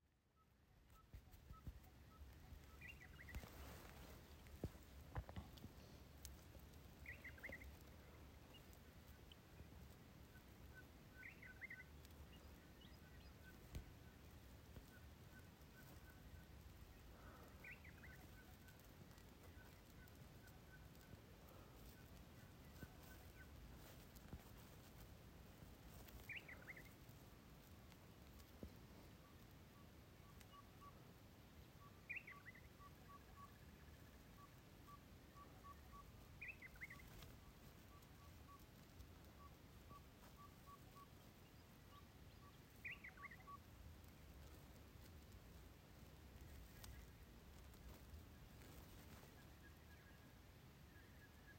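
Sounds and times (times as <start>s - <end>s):
Australian desert birds in early morning: 0.3s - 51.5s.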